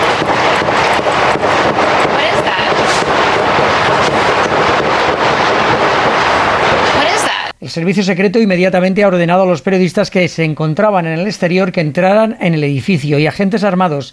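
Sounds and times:
gunshots outside the White House: 0.0s - 7.4s
constant rushing wind noise: 0.0s - 7.5s
indistinct voices: 0.0s - 7.5s
speech: 7.7s - 14.1s.

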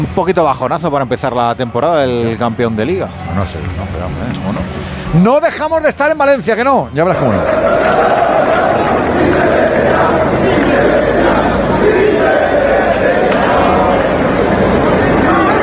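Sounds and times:
speech: 0.0s - 8.2s
stadium crowd shouting in indignation: 7.1s - 15.6s.

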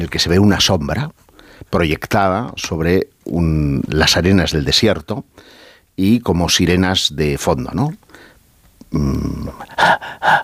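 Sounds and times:
speech: 0.0s - 8.3s, 8.9s - 10.4s
heavy labored breathing: 5.3s - 5.9s, 8.1s - 8.4s, 9.3s - 10.4s.

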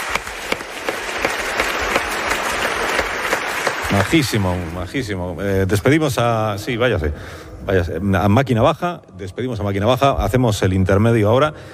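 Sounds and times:
audience applause: 0.0s - 5.2s
speech: 3.9s - 11.7s.

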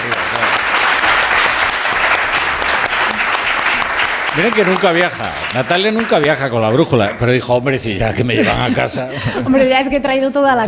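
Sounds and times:
audience applause: 0.0s - 8.0s
speech: 4.4s - 10.6s
laughter: 8.0s - 9.9s.

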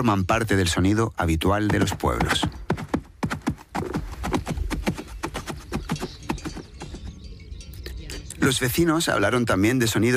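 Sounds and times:
speech: 0.0s - 2.6s, 8.5s - 10.1s
hooves of work animals clip-clopping: 1.4s - 7.4s.

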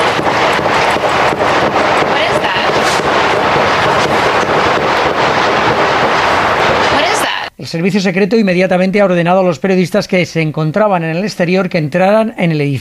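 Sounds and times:
gunshots outside a building: 0.0s - 7.5s
steady wind-like noise: 0.0s - 7.5s
speech: 7.7s - 12.7s.

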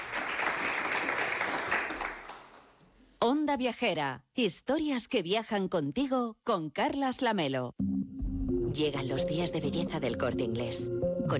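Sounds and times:
live audience applause: 0.0s - 2.7s
speech: 3.4s - 7.9s, 8.8s - 11.3s.

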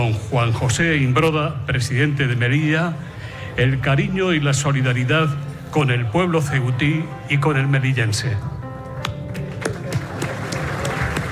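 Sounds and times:
speech: 0.0s - 8.6s
audience applause: 9.3s - 11.3s.

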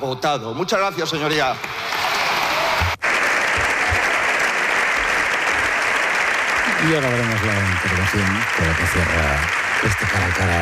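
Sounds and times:
speech: 0.0s - 2.0s, 6.8s - 10.6s
long applause in parliament: 1.8s - 10.6s.

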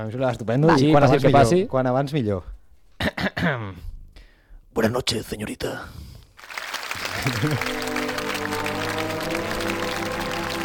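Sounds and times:
speech: 0.0s - 2.5s, 3.2s - 3.9s, 4.8s - 6.1s, 7.2s - 7.8s
audience applause: 6.4s - 10.6s.

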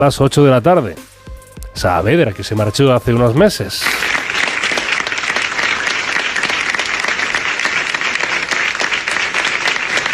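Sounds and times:
speech: 0.0s - 1.1s, 1.8s - 4.1s
applause in the La Sexta Noticias newsroom: 3.8s - 10.1s.

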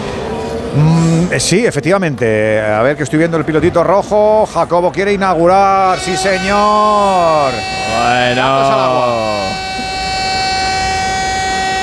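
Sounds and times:
speech: 0.8s - 9.6s
alarm siren sound effect: 5.4s - 11.8s.

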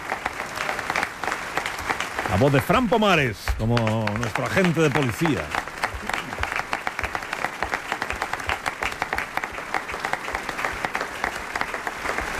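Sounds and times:
audience clapping for guest actors: 0.0s - 12.3s
speech: 2.3s - 5.6s.

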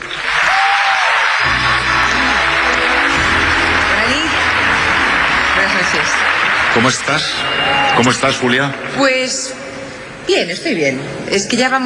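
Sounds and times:
audience applause: 0.0s - 9.3s
speech: 6.8s - 9.6s, 10.3s - 11.8s.

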